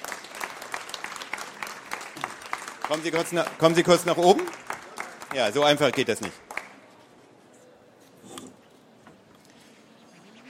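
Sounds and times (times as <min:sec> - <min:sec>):
audience applause: 0:00.0 - 0:06.8
speech: 0:02.9 - 0:04.6, 0:05.3 - 0:06.4.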